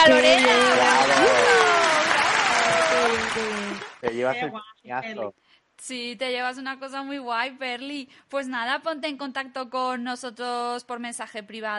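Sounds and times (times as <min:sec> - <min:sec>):
speech: 0:00.0 - 0:00.6, 0:03.4 - 0:11.7
excited voices and whoops: 0:00.0 - 0:03.9
applause: 0:00.0 - 0:04.4.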